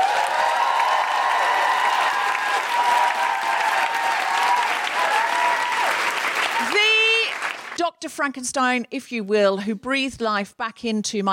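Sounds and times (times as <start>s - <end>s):
huge audience round of applause: 0.0s - 7.8s
speech: 8.0s - 11.3s.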